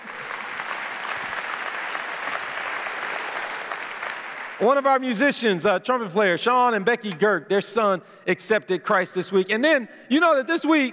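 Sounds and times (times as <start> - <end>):
church congregation applauding during a service: 0.0 - 5.3
speech: 4.6 - 10.9.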